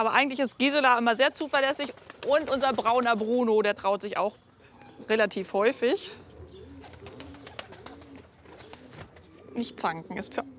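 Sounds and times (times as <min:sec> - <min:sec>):
speech: 0:00.0 - 0:06.2, 0:09.6 - 0:10.5
pigeons' wing clapping: 0:01.6 - 0:03.1, 0:06.8 - 0:09.3
pigeons cooing softly: 0:01.9 - 0:10.5.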